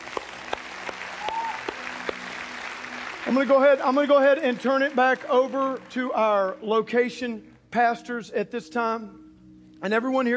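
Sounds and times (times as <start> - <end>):
audience hand clapping: 0.0 - 6.6
speech: 3.3 - 9.2, 9.8 - 10.3.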